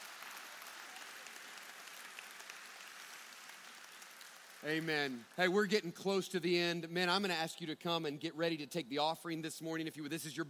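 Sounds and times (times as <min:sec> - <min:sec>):
audience applause: 0:00.0 - 0:05.7
speech: 0:04.6 - 0:10.4.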